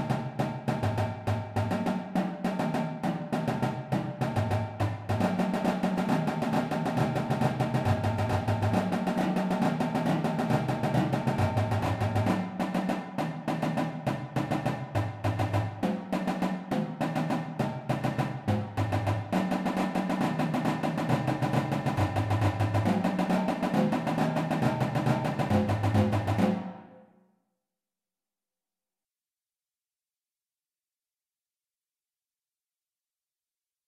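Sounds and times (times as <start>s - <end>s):
beginner drumline warmup flams: 0.0s - 26.9s.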